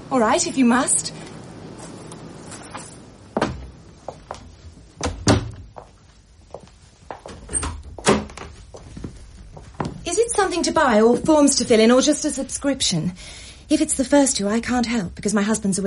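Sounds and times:
speech: 0.1s - 1.2s, 10.8s - 15.8s
door being shut: 5.0s - 5.7s, 7.4s - 8.6s.

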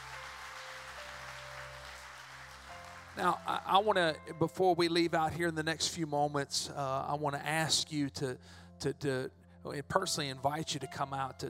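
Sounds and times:
audience hand clapping: 0.0s - 3.6s
speech: 3.2s - 11.4s.

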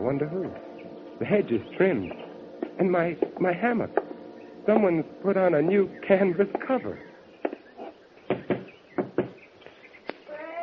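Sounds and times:
speech: 0.0s - 4.0s, 4.7s - 7.1s
faint bird chirps: 0.0s - 10.6s
sharp hollow knocks on a door: 8.3s - 9.4s.

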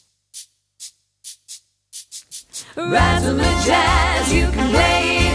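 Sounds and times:
cabasa shaken in a rhythm: 0.0s - 2.8s
speech: 2.8s - 5.2s.

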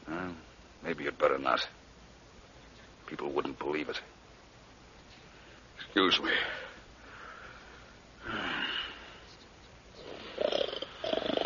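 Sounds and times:
speech: 0.8s - 1.8s, 3.1s - 4.2s, 6.0s - 6.6s, 8.2s - 8.6s
man snoring while asleep: 10.0s - 11.4s.

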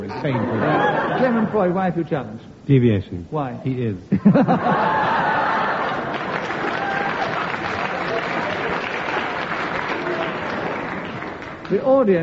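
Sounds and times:
laughter: 0.0s - 1.9s, 4.1s - 9.0s
speech: 0.1s - 5.1s, 11.7s - 12.2s
studio audience applause: 4.8s - 11.8s.

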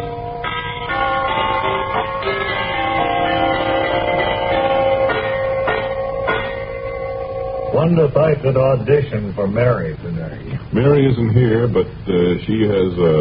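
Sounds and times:
door chimes ringing: 0.0s - 8.8s
speech: 7.9s - 13.1s.

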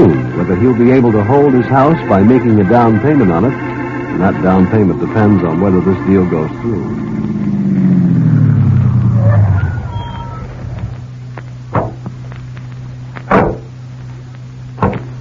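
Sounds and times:
car engine rumbling: 0.0s - 15.1s
low hum: 0.0s - 15.1s
speech: 0.6s - 8.0s
car doors thudding: 11.7s - 12.1s, 13.3s - 13.7s, 14.8s - 15.1s.

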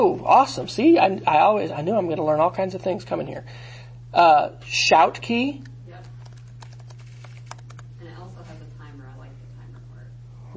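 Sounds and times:
speech: 0.1s - 5.7s
typing a URL on a computer keyboard: 6.1s - 7.9s.

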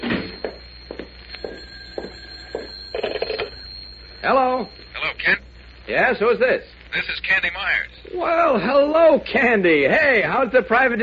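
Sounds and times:
telephone bell ringing: 0.0s - 5.3s
speech: 4.2s - 11.0s.

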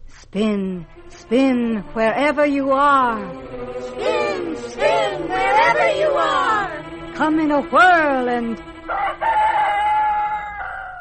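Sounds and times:
speech: 0.3s - 9.2s
rooster crowing at dawn: 8.9s - 10.9s.

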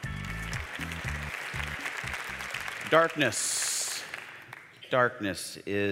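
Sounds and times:
low rhythmic bass tones: 0.0s - 2.8s
audience clapping in a darkened church: 0.0s - 4.8s
speech: 2.9s - 3.6s, 4.9s - 5.9s.

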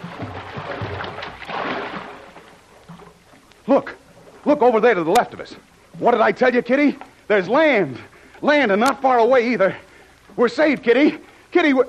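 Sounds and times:
small boat surging through ocean water: 0.0s - 5.7s
speech: 3.7s - 11.8s.

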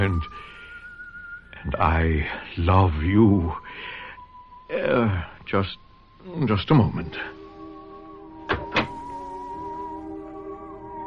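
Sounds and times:
speech: 0.0s - 0.5s, 1.6s - 4.0s, 4.7s - 7.4s
door to a room closing: 8.4s - 9.5s.

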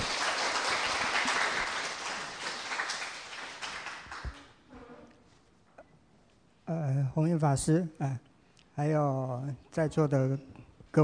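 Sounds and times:
audience applause welcoming a professor: 0.0s - 4.6s
speech: 7.2s - 11.0s.

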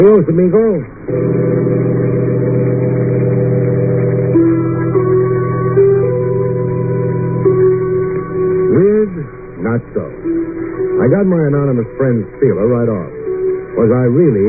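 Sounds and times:
speech: 0.0s - 2.5s, 9.8s - 13.2s, 13.8s - 14.4s
bus engine driving off: 1.1s - 11.2s.

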